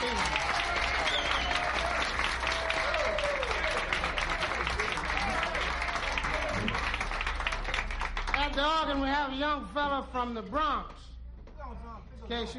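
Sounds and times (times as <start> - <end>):
audience applause: 0.0 - 9.0
speech: 9.3 - 11.0, 12.3 - 12.5.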